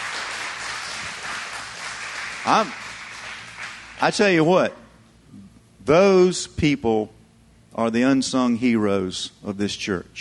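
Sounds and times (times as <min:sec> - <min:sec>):
crowd applauding: 0:00.0 - 0:04.2
speech: 0:02.4 - 0:02.8, 0:04.0 - 0:07.2, 0:07.8 - 0:10.1.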